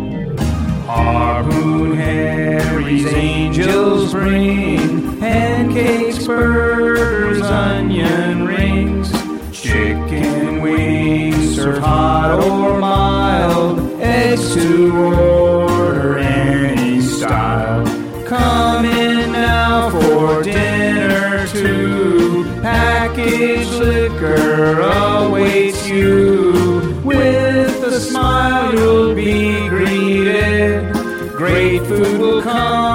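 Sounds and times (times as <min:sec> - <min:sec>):
Christmas jingle: 0:00.2 - 0:32.9.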